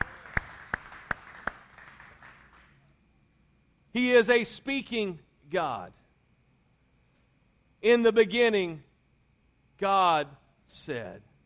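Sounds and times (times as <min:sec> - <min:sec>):
scattered crowd applause: 0:00.0 - 0:02.8
sharp hand claps: 0:00.0 - 0:02.8
speech: 0:03.9 - 0:06.0, 0:07.8 - 0:08.9, 0:09.8 - 0:11.3.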